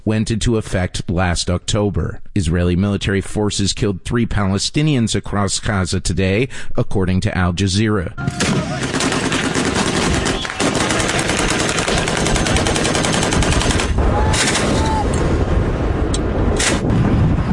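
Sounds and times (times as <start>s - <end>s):
speech: 0.1s - 9.0s
heavy gunfire from Saudi-backed Yemeni government forces: 8.3s - 17.5s.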